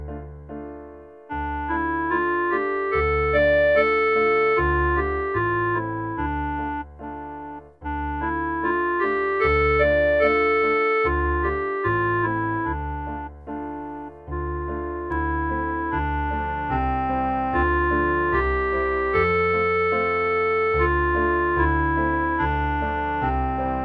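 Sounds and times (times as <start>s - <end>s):
clarinet: 1.3s - 23.8s.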